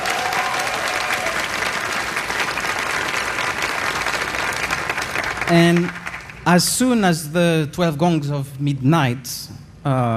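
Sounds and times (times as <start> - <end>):
audience applause: 0.0 - 6.4
speech: 5.5 - 10.1.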